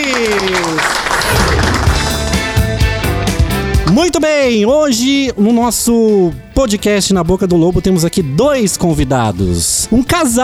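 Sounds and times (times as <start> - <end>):
applause: 0.0 - 2.8
speech: 4.0 - 10.4.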